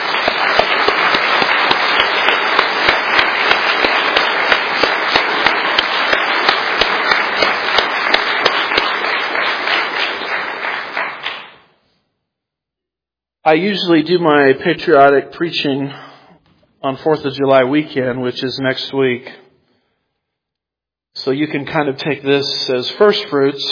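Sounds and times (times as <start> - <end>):
audience applauding: 0.0 - 11.7
speech: 13.5 - 16.1, 16.8 - 19.4, 21.2 - 23.7.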